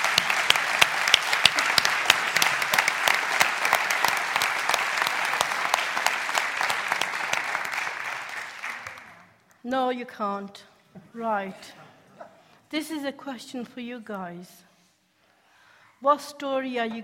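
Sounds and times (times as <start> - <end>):
crowd clapping: 0.0 - 9.4
speech: 9.7 - 11.8, 12.7 - 14.7, 16.0 - 17.0.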